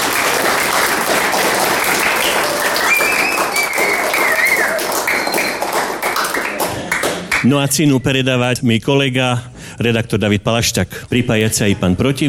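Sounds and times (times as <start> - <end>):
audience applause: 0.0 - 7.5
faint whistles and cheers: 2.0 - 5.8
speech: 7.4 - 12.2.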